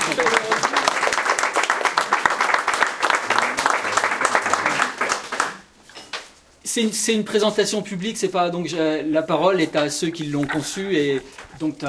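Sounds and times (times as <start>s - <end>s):
audience applause: 0.0s - 5.7s
speech: 6.8s - 11.8s.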